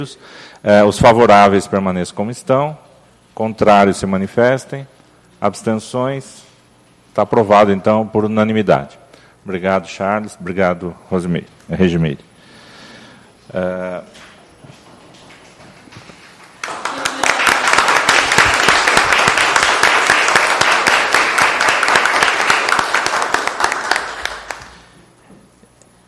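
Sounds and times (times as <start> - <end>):
speech: 0.0 - 6.4, 7.2 - 12.3, 13.5 - 14.3
audience applause after unanimous approval: 16.2 - 24.9.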